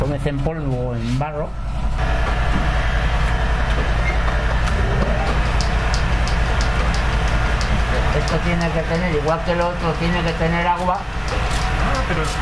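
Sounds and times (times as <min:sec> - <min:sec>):
speech: 0:00.1 - 0:02.3, 0:08.0 - 0:11.4, 0:12.1 - 0:12.3
glass polishing machine with cork wheels running: 0:02.0 - 0:12.3.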